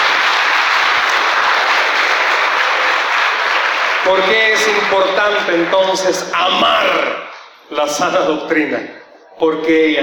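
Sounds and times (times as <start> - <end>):
crowd applause: 0.0 - 6.6
speech: 4.1 - 10.0.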